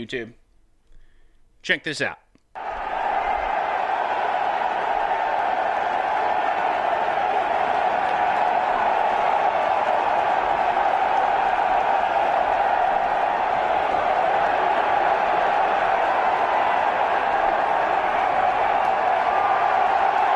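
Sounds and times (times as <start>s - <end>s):
speech: 0.0s - 0.4s, 1.6s - 2.2s
stadium crowd cheering: 2.6s - 20.3s.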